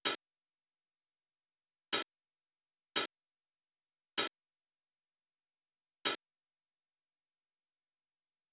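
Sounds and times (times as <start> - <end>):
hi-hat: 0.0 - 0.2, 3.0 - 3.2, 4.2 - 4.4, 6.0 - 6.3.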